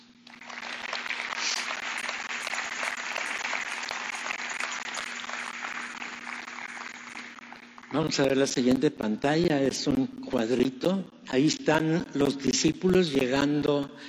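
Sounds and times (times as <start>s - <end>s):
audience applause: 0.0s - 8.3s
speech: 7.9s - 14.0s.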